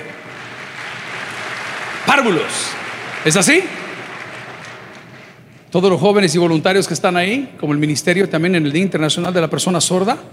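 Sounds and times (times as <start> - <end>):
audience applause: 0.0 - 5.5
speech: 2.1 - 3.8, 5.7 - 10.3.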